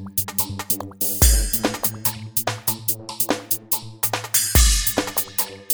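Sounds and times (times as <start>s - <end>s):
film and TV punch: 1.2s - 1.8s, 4.6s - 5.0s.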